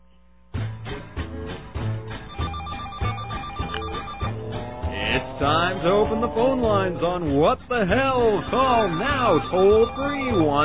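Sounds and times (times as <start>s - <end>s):
short made-up jingle for phone lines: 2.2s - 10.6s
speech: 5.1s - 10.6s.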